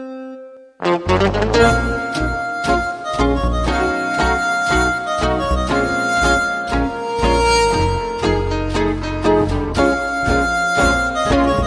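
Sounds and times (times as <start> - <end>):
tango music: 0.8 - 11.6.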